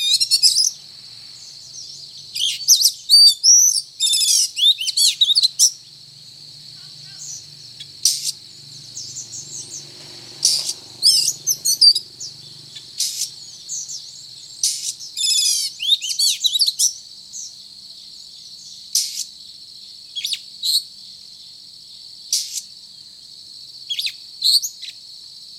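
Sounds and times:
Oriental magpie-robin song: 0.0 - 0.8, 1.4 - 17.6.

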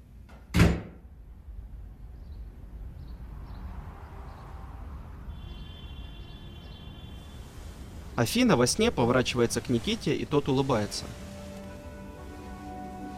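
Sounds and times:
door shutting with a heavy thud: 0.3 - 1.0
speech: 8.2 - 11.3.

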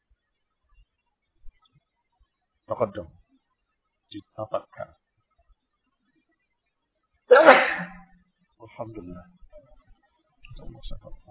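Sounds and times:
speech: 2.7 - 3.2, 4.1 - 5.0, 8.8 - 9.4, 10.6 - 11.2
person sneezing: 7.3 - 8.0.

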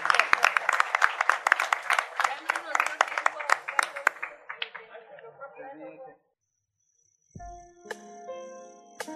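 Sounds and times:
crowd applause at a long-running program's 30th anniversary: 0.0 - 5.4.

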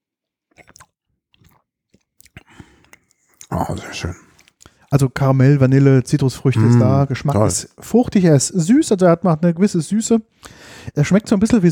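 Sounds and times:
person sipping and slurping an amber spirit at a bar trade show in Berlin: 0.5 - 1.6, 2.2 - 5.0, 6.6 - 7.2
speech: 3.5 - 4.2, 4.9 - 11.7.

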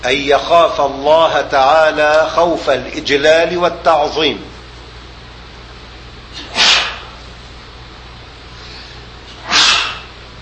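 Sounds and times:
speech: 0.0 - 4.5
sneezes: 6.3 - 7.2, 8.6 - 10.2.

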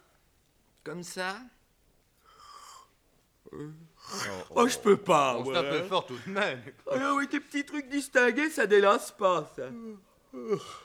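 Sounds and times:
speech: 0.8 - 1.6, 3.4 - 10.8
person yawning: 10.3 - 10.8.

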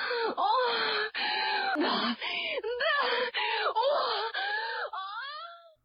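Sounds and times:
woman crying out and moaning: 0.2 - 5.7.

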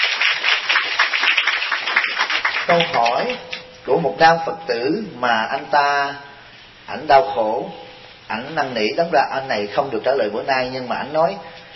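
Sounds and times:
Buddhist audience applause during a Dharma question-and-answer talk: 0.0 - 3.3
speech: 2.7 - 6.3, 6.9 - 11.5.

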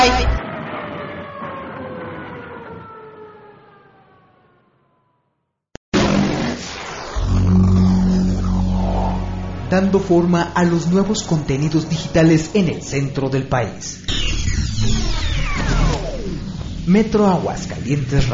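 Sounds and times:
police car siren wailing as the car drives off: 0.0 - 5.4, 7.2 - 18.3
loud burst of noise: 6.0 - 12.9, 14.0 - 18.3
speech: 9.7 - 15.0, 16.9 - 18.3.

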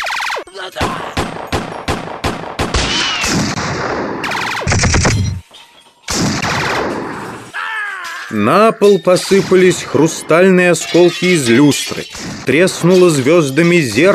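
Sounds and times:
speech: 0.5 - 1.2, 8.3 - 14.1
Browning pistol gunfire: 0.8 - 5.2, 6.1 - 7.2, 12.1 - 12.8.

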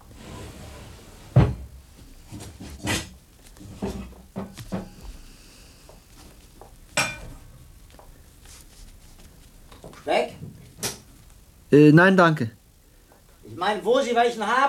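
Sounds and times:
cupboard door under the sink banging open: 1.3 - 1.8
metal frying pan pulled off a shelf and handled: 7.0 - 7.4
speech: 10.1 - 10.4, 11.7 - 12.6, 13.6 - 14.6.

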